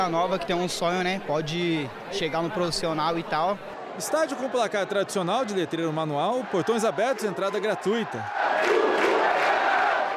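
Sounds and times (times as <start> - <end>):
speech: 0.0 - 8.9
football crowd cheering in a stadium: 3.6 - 10.1.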